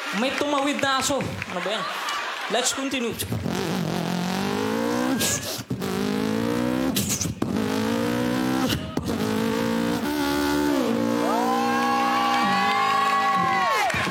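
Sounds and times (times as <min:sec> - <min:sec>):
speech: 0:00.1 - 0:03.5
laughter: 0:01.5 - 0:03.4
Yamaha YZ125 dirt bike engine revving off-road: 0:03.3 - 0:13.9.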